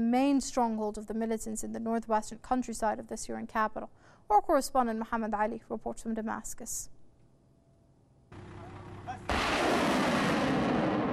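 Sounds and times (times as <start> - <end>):
speech: 0.0 - 7.0
heavy weapons fire striking militant hideouts in Zabadani, Syria: 8.4 - 11.1.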